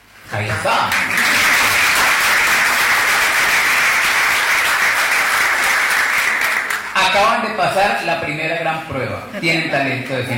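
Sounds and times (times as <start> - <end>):
speech: 0.3 - 1.3, 7.1 - 10.3
group clapping hands: 0.4 - 7.1.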